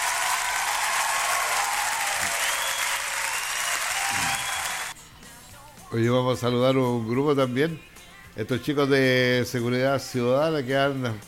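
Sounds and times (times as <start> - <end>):
audience applause: 0.0 - 4.9
speech: 5.9 - 11.2.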